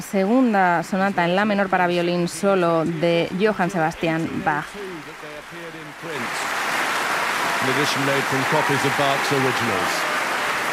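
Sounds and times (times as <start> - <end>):
speech: 0.0 - 5.2, 7.6 - 10.1
Wigmore Hall audience applause after a violin sonata: 4.5 - 10.7.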